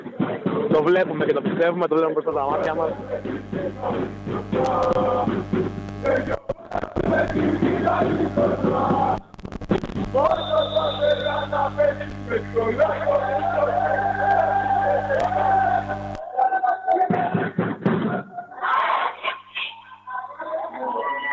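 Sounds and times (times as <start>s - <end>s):
speech: 0.7s - 6.4s
fans chanting in a sports hall: 7.0s - 9.2s, 10.2s - 21.3s.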